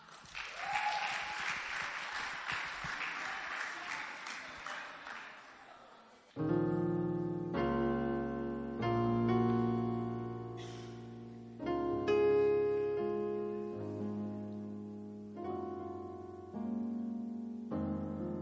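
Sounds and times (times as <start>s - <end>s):
audience applause: 0.0s - 6.0s
keyboard or organ chords: 6.4s - 18.4s.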